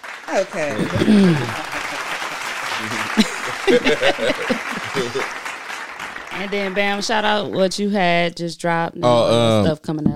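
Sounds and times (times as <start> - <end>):
clapping sound effect: 0.0 - 7.6
speech: 0.3 - 1.7, 2.8 - 5.4, 6.4 - 10.1
laughter: 0.3 - 5.5.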